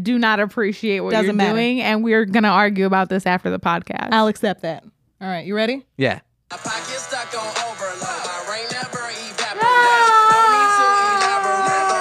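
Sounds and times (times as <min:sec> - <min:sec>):
speech: 0:00.0 - 0:08.1
young child wailing and screaming: 0:09.5 - 0:11.9.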